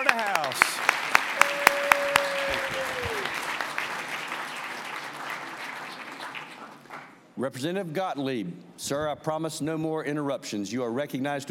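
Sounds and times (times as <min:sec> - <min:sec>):
audience applause: 0:00.0 - 0:07.1
speech: 0:07.4 - 0:11.5.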